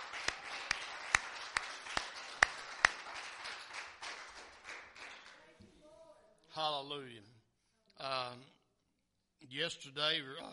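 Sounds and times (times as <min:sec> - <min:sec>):
audience clapping hands in praise: 0:00.0 - 0:05.6
speech: 0:06.6 - 0:07.4, 0:08.0 - 0:08.5, 0:09.4 - 0:10.5.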